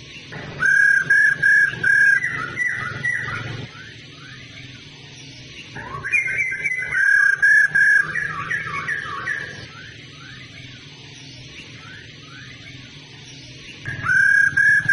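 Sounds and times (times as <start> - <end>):
low humming noise: 0.0 - 14.9
laughingthrush whistles: 0.6 - 3.9, 5.9 - 10.0, 13.9 - 14.9.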